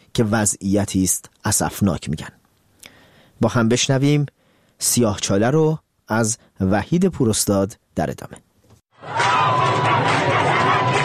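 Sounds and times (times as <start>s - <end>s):
speech: 0.2s - 2.4s, 3.4s - 9.2s
street protesters shouting: 9.0s - 11.0s.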